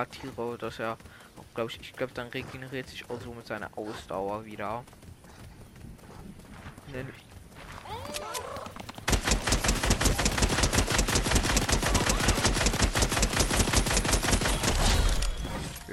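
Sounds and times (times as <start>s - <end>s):
speech: 0.0s - 5.1s, 6.9s - 7.1s
video game automatic gunfire emptying a full magazine: 9.0s - 15.3s.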